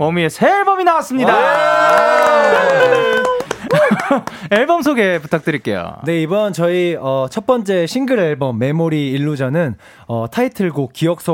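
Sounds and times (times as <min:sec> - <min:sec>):
speech: 0:00.0 - 0:11.3
audience cheering: 0:01.2 - 0:04.3
audience applause: 0:01.2 - 0:04.7
laughter: 0:02.3 - 0:04.5.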